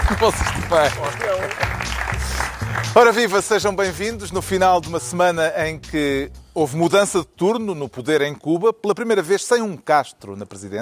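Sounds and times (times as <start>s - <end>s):
laughter: 0.0s - 1.8s
audience clapping: 0.0s - 3.8s
speech: 0.2s - 1.8s, 2.8s - 10.7s.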